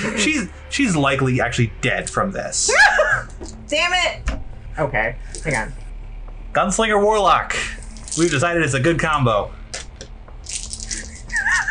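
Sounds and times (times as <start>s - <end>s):
laughter: 0.0s - 0.5s, 2.6s - 3.4s, 10.8s - 11.6s
speech: 0.1s - 5.8s, 6.5s - 9.6s
handful of dice being rolled: 10.5s - 11.2s.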